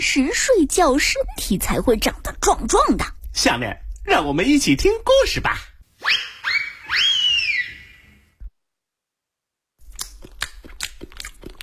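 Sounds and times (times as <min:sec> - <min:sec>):
speech: 0:00.0 - 0:06.2
short whistle-like tones: 0:06.0 - 0:08.2
crunchy bites of carrot cake: 0:09.8 - 0:11.6.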